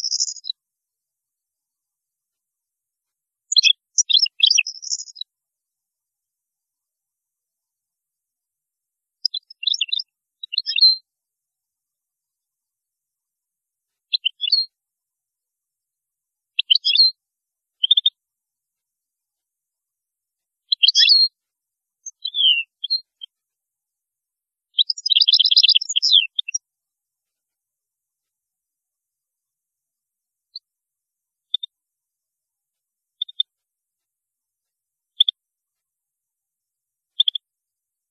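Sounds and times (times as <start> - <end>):
European goldfinch twittering song: 0.0 - 0.6, 3.5 - 5.3, 9.2 - 11.0, 14.1 - 14.7, 16.6 - 17.2, 17.8 - 18.2, 20.7 - 21.3, 22.0 - 23.3, 24.7 - 26.6, 33.2 - 33.5, 37.2 - 37.4.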